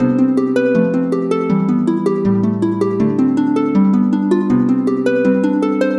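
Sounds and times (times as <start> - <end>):
harp: 0.0 - 5.9.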